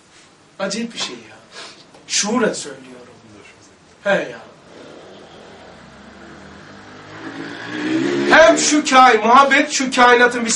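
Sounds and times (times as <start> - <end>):
speech: 0.6 - 1.5, 2.1 - 3.2, 4.0 - 4.5, 7.8 - 10.5
engine revving and roaring: 4.5 - 8.9.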